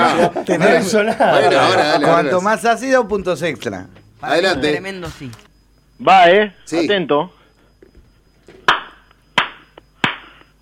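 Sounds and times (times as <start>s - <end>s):
laughter: 0.0s - 2.5s
speech: 0.1s - 7.4s
hand clapping: 8.7s - 10.5s.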